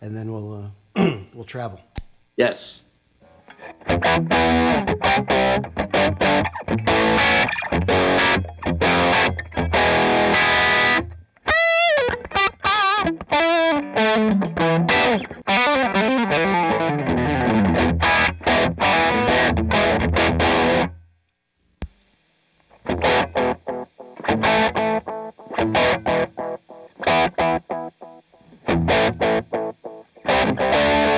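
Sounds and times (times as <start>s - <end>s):
speech: 0.0s - 2.9s, 3.8s - 8.8s
distorted electric guitar through an amp and delay pedal: 2.8s - 21.0s, 21.6s - 31.1s.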